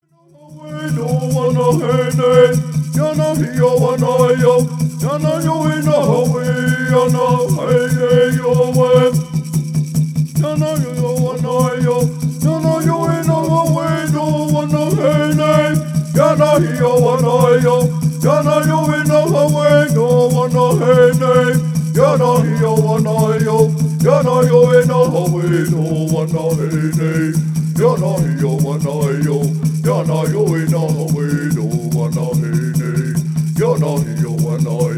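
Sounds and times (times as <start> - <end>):
person singing a peyote healing song: 0.1 - 9.7, 10.4 - 34.9.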